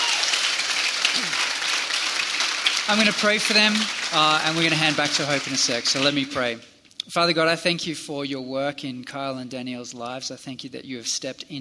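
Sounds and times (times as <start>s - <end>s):
congregation applauding: 0.0s - 6.6s
speech: 2.9s - 11.5s.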